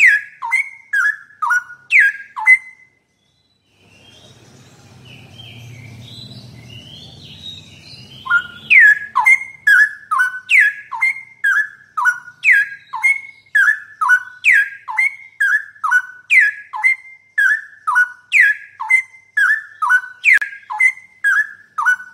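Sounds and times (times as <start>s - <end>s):
straw-headed bulbul song: 0.0s - 22.1s.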